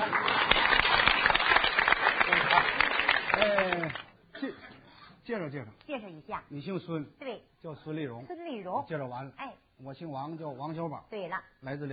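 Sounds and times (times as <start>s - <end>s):
audience applause: 0.0s - 4.1s
speech: 5.3s - 11.9s.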